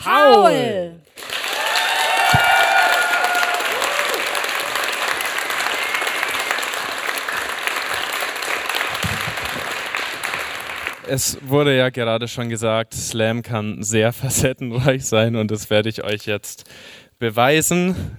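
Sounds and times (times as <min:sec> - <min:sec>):
speech: 0:00.0 - 0:01.0, 0:11.1 - 0:18.1
audience applause: 0:01.1 - 0:11.5.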